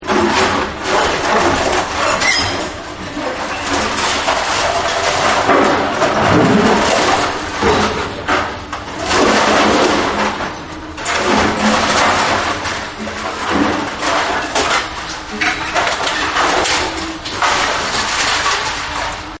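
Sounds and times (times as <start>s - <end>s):
metal being destroyed: 0.0s - 19.3s.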